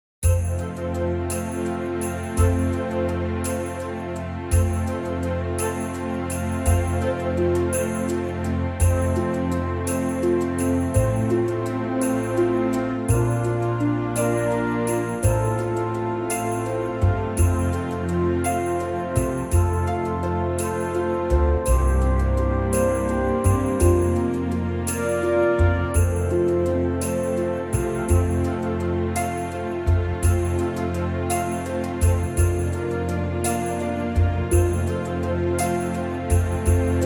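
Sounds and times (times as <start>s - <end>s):
orchestra playing: 0.3s - 37.0s.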